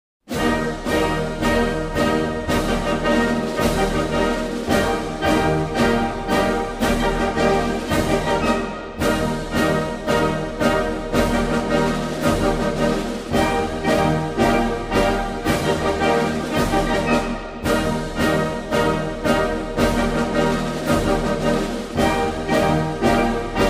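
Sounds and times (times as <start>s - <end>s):
flag march music: 0.3s - 23.6s.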